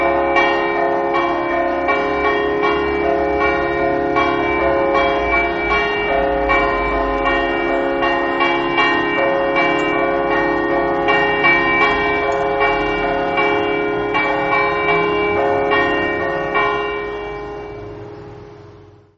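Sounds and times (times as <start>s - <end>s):
bells ringing: 0.0s - 19.1s.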